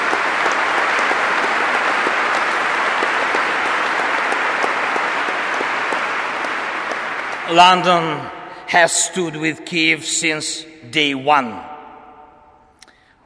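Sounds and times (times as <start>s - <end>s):
audience applause: 0.0s - 8.3s
speech: 7.5s - 11.7s.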